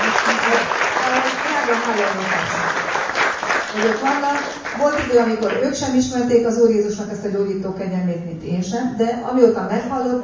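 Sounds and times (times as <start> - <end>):
crowd applauding: 0.0 - 5.7
speech: 0.6 - 2.8, 3.7 - 10.2.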